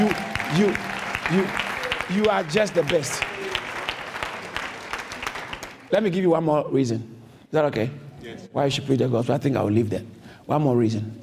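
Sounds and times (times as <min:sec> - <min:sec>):
speech: 0:00.0 - 0:03.3, 0:05.9 - 0:11.2
audience applauding: 0:00.0 - 0:05.9.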